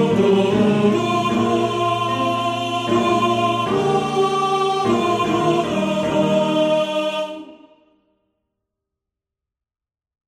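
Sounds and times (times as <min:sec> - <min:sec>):
tenor singing: 0:00.0 - 0:07.8.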